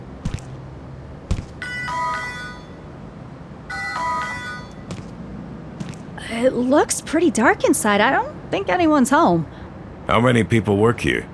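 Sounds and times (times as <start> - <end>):
door buzzer ringing: 1.6 - 2.8, 3.7 - 5.0
speech: 6.4 - 11.3.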